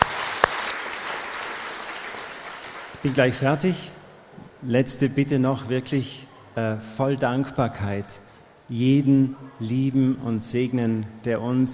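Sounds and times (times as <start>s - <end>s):
audience applause at an anniversary celebration: 0.0s - 3.5s
sharp loud claps: 0.0s - 3.5s
speech: 3.0s - 4.0s, 4.6s - 11.7s.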